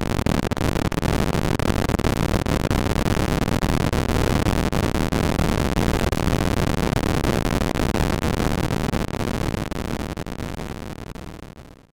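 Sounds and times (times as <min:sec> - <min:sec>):
hard static crackle drone: 0:00.0 - 0:11.7.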